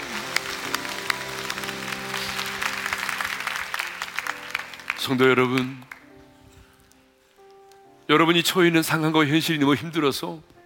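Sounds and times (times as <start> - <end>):
audience clapping: 0.0 - 6.2
speech: 5.0 - 5.9, 8.1 - 10.5.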